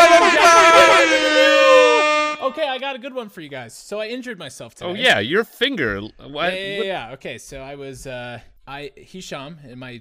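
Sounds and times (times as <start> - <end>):
air horns sound effect: 0.0 - 2.8
speech: 2.9 - 9.9.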